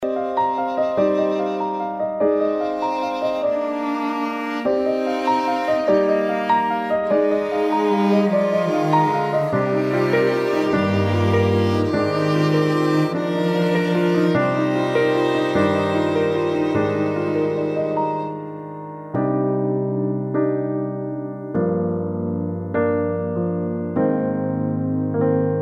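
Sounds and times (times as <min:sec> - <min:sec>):
instrumental music: 0:00.0 - 0:25.6.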